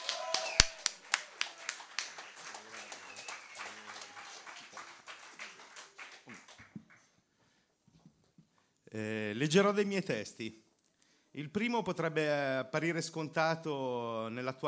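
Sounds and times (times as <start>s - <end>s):
crowd applause: 0.0s - 7.0s
speech: 8.9s - 10.7s, 11.4s - 14.6s.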